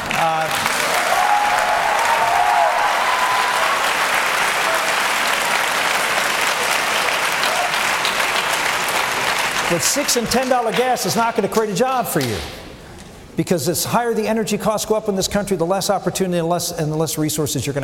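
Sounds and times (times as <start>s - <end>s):
audience applause: 0.0s - 11.0s
speech: 9.7s - 12.6s, 13.4s - 17.8s.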